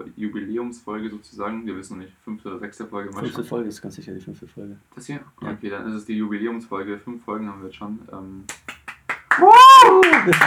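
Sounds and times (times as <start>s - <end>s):
speech: 0.0s - 8.7s, 9.4s - 10.4s
hand clapping: 8.5s - 10.4s.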